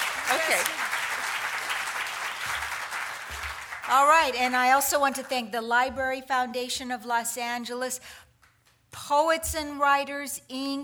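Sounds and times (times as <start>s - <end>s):
audience applause at a literary reading: 0.0s - 4.4s
speech: 0.4s - 0.9s, 3.9s - 8.2s, 9.0s - 10.8s.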